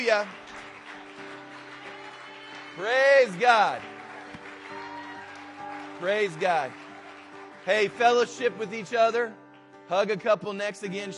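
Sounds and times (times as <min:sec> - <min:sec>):
speech: 0:00.0 - 0:00.4, 0:02.8 - 0:03.9, 0:06.0 - 0:06.8, 0:07.6 - 0:11.1
audience hand clapping: 0:00.0 - 0:10.6.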